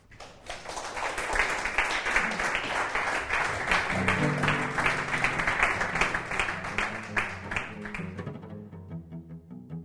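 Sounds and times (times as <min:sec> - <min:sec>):
audience applause welcoming a cellist on stage: 0:00.0 - 0:08.2.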